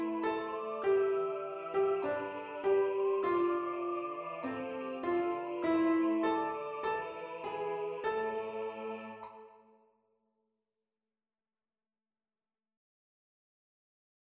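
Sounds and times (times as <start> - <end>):
alto piano: 0.0 - 9.6.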